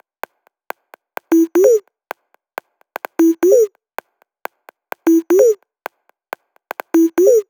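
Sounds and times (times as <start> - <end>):
drum kit at 128 BPM: 1.3 - 1.8, 3.0 - 3.7, 5.1 - 5.6, 6.8 - 7.4.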